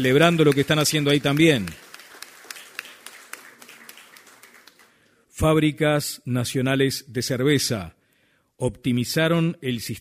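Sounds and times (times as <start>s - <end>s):
speech: 0.0s - 1.8s, 5.4s - 8.0s, 8.6s - 10.0s
audience applause: 0.0s - 5.0s.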